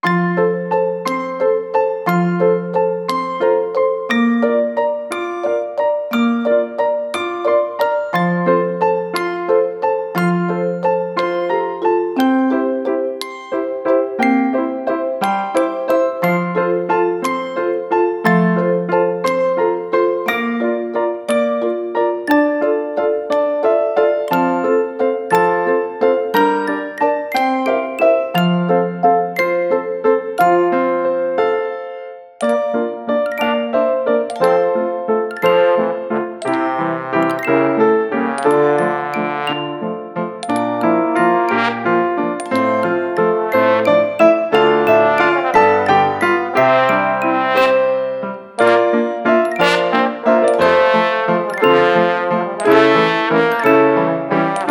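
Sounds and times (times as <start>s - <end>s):
doll waltz music: 0.0s - 54.6s.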